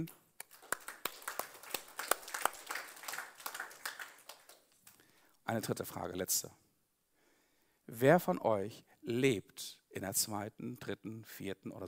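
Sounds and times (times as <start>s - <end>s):
speech: 0.0s - 0.2s, 5.5s - 6.6s, 7.9s - 11.8s
audience applause: 0.4s - 4.6s.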